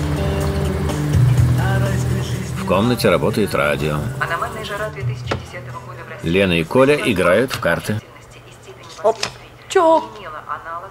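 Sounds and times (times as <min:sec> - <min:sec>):
Zhiguli car driving along a dusty road: 0:00.0 - 0:07.3
speech: 0:02.7 - 0:08.1, 0:09.0 - 0:10.8.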